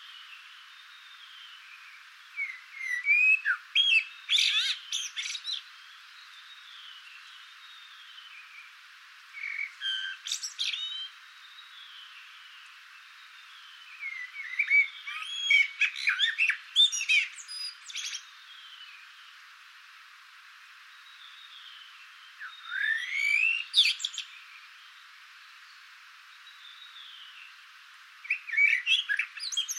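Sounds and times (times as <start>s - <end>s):
Eurasian blackbird song: 0.0s - 8.7s, 9.4s - 12.6s, 13.2s - 19.0s, 21.0s - 24.6s, 28.2s - 29.7s.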